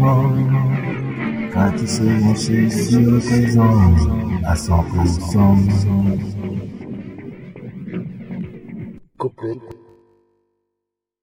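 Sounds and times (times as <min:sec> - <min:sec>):
instrumental music without piano or vocals: 0:00.0 - 0:08.4.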